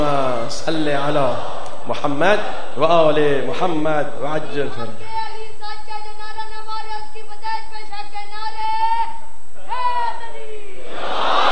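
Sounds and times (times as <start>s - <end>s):
speech: 0.5s - 5.8s
crowd responding: 1.1s - 2.8s, 9.6s - 11.5s
boy shouting a religious slogan: 4.6s - 10.8s.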